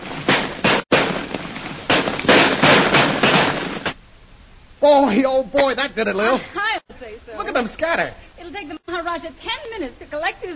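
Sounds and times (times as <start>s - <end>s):
rifle shots fired over the heads of a Maharaja's men: 0.3s - 4.0s
speech: 4.8s - 6.6s, 7.5s - 10.5s.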